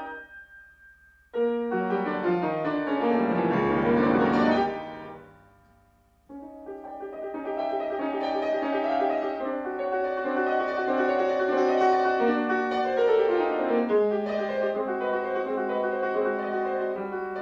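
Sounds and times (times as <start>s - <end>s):
piano fantasia: 0.0s - 17.4s.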